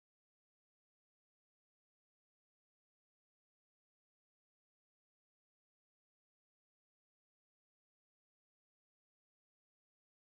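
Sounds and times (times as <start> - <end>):
bass: 0.0 - 10.2.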